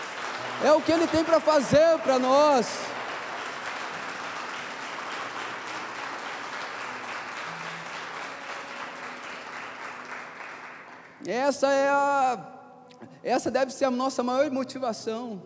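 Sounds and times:
audience applause: 0:00.0 - 0:11.2
speech: 0:00.6 - 0:02.9, 0:11.2 - 0:15.4.

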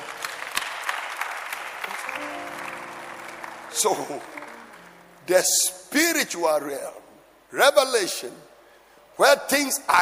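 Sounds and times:
audience clapping: 0:00.0 - 0:05.3
speech: 0:03.8 - 0:04.4, 0:05.3 - 0:08.5, 0:09.2 - 0:09.9.

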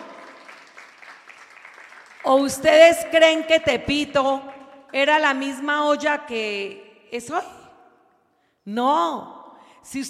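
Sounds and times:
audience applauding: 0:00.0 - 0:02.3
speech: 0:02.2 - 0:07.6, 0:08.7 - 0:10.0.

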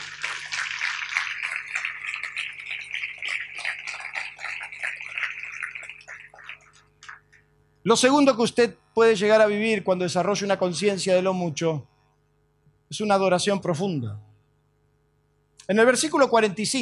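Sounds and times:
audience applauding loudly: 0:00.0 - 0:07.3
speech: 0:07.8 - 0:11.9, 0:12.9 - 0:14.3, 0:15.7 - 0:16.8.

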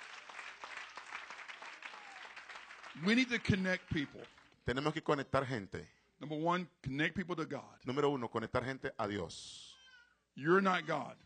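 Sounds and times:
crowd clapping: 0:00.0 - 0:05.0
speech: 0:03.0 - 0:09.6, 0:10.4 - 0:11.2.

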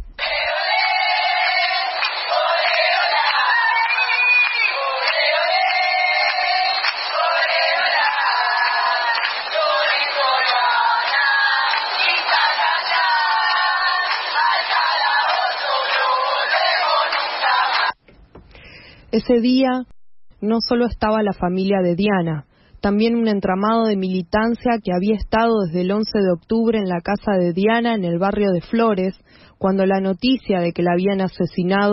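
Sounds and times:
protest march crowd chanting: 0:00.2 - 0:18.0
speech: 0:19.2 - 0:31.9.

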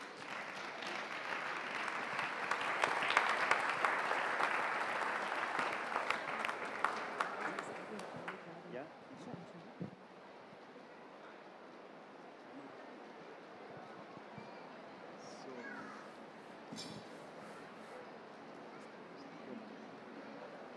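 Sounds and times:
audience applause: 0:00.0 - 0:08.4.

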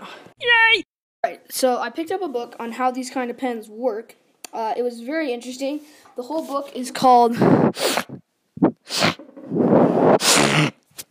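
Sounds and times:
speech: 0:01.6 - 0:08.2
person sneezing: 0:07.4 - 0:08.2, 0:08.8 - 0:09.2, 0:10.1 - 0:11.0
short faint sniff: 0:07.4 - 0:11.0.

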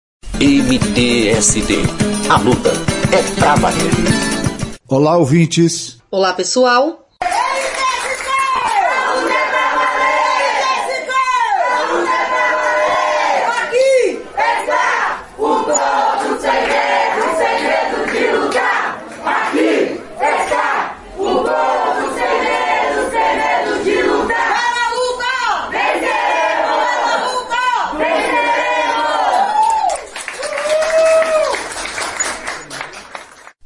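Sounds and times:
speech: 0:00.4 - 0:07.0
crowd cheering: 0:07.2 - 0:33.6
crowd applause: 0:28.9 - 0:33.6.

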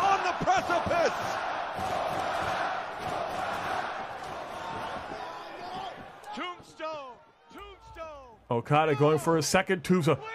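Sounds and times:
wrestling arena crowd cheering: 0:00.0 - 0:10.3
speech: 0:08.5 - 0:10.3.

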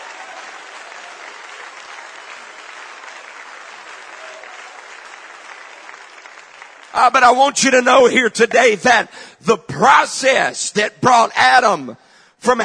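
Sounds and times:
audience clapping hands: 0:00.0 - 0:07.6
speech: 0:06.9 - 0:12.6.

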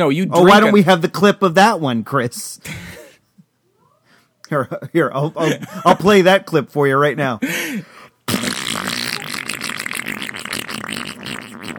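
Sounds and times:
speech: 0:00.0 - 0:02.9, 0:04.5 - 0:07.9
loud wet sputtering diarrhea fart: 0:08.3 - 0:11.7.

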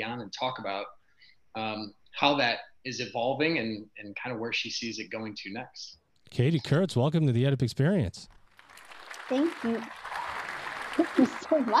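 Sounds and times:
speech: 0:00.0 - 0:08.4, 0:09.2 - 0:10.1, 0:11.0 - 0:11.7
applause sound effect: 0:08.5 - 0:11.7
whoops and cheers: 0:09.4 - 0:11.7.

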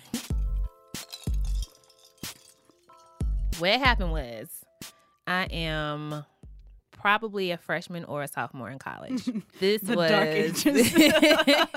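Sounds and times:
cup clinking while sipping: 0:01.0 - 0:03.2
speech: 0:03.6 - 0:04.7, 0:05.3 - 0:06.3, 0:07.0 - 0:11.7
laughter: 0:09.1 - 0:11.7.

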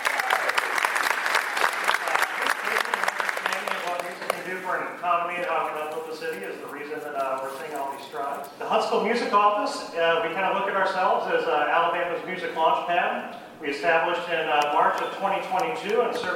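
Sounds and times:
audience applause for Mayor Tommy Battle: 0:00.0 - 0:04.6
speech: 0:05.0 - 0:16.3.

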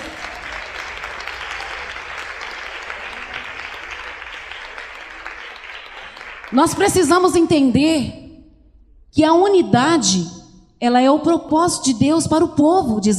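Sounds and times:
audience applauding loudly: 0:00.0 - 0:07.2
speech: 0:06.5 - 0:08.2, 0:09.2 - 0:13.1.

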